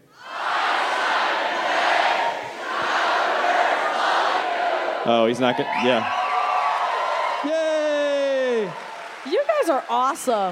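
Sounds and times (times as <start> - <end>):
Chicago audience shouting a greeting together at a live show: 0.2 - 10.5
speech: 5.1 - 6.2, 9.6 - 10.5.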